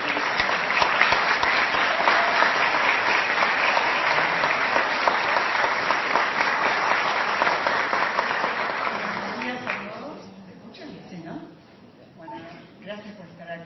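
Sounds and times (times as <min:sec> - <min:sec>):
loud audience applause: 0:00.0 - 0:09.8.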